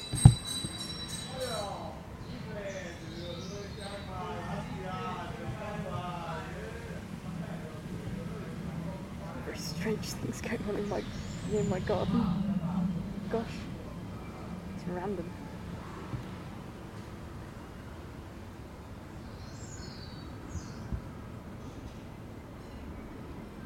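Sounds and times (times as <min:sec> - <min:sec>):
bellringer ringing bells: 0:00.0 - 0:01.9
birdsong in a garden: 0:00.0 - 0:23.6.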